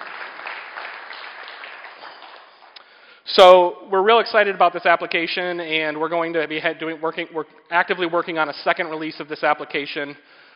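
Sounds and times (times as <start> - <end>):
round of applause: 0.0 - 3.1
speech: 3.3 - 10.4.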